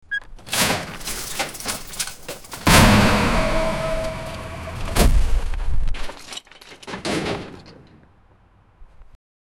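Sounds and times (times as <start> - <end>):
something being dumped: 2.6 - 6.2.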